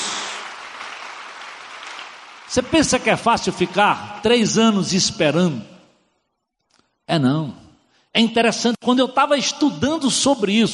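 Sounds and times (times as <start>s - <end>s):
audience applauding: 0.0s - 3.8s
speech: 2.5s - 5.7s, 7.1s - 10.7s.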